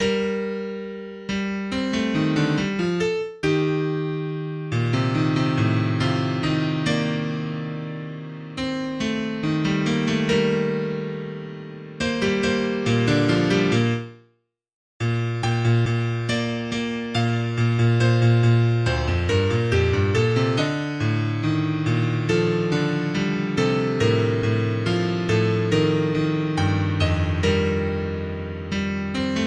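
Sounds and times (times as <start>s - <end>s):
piano piece: 0.0s - 14.3s, 15.0s - 29.4s.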